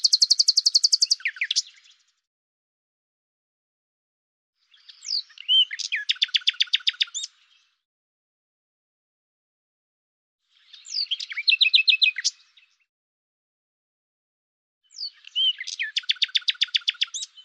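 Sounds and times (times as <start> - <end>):
common nightingale song: 0.0 - 2.1, 4.6 - 7.8, 10.5 - 12.9, 14.8 - 17.4.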